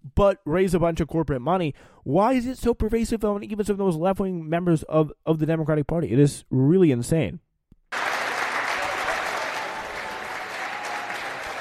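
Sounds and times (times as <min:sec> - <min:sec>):
speech: 0:00.2 - 0:07.5
audience applause: 0:07.9 - 0:11.5.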